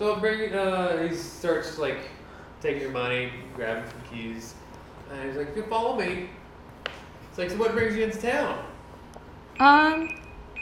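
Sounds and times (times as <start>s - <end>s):
speech: 0.0s - 8.7s, 9.6s - 10.2s
timer beeping: 9.6s - 10.5s.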